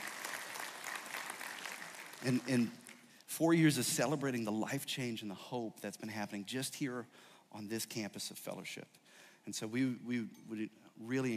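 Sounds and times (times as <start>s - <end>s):
crowd applauding: 0.0s - 3.1s
speech: 2.2s - 11.3s.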